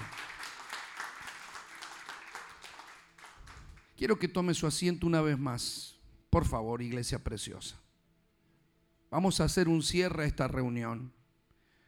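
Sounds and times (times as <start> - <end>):
audience applauding: 0.0 - 3.9
speech: 4.0 - 7.8, 9.1 - 11.2.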